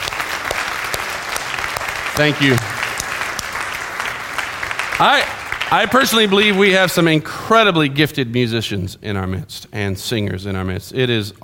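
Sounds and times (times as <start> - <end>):
audience applause: 0.0 - 7.2
speech: 2.2 - 2.7, 5.0 - 11.4.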